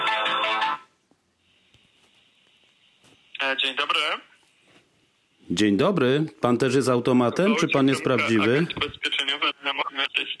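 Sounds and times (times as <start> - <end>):
telephone ringing tone while a call is transferred: 0.0 - 0.9
speech: 3.4 - 4.3, 5.5 - 10.3.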